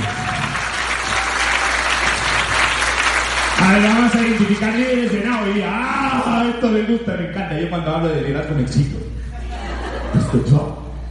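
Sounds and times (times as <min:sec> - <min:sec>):
audience applause: 0:00.0 - 0:05.6
speech: 0:03.7 - 0:09.2, 0:10.3 - 0:10.8
laughter: 0:09.3 - 0:10.7.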